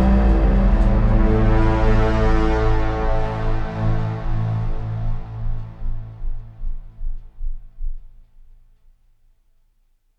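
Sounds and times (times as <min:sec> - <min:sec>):
cinematic horror tension music: 0:00.0 - 0:07.8.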